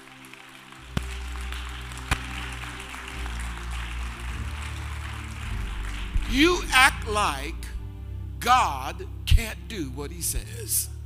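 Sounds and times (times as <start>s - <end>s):
audience clapping hands: 0.0s - 7.6s
speech: 6.3s - 7.7s, 8.4s - 10.9s.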